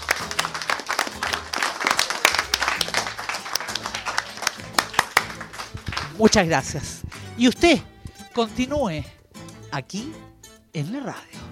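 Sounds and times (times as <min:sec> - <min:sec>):
audience applause: 0:00.0 - 0:07.3
speech: 0:06.2 - 0:11.4.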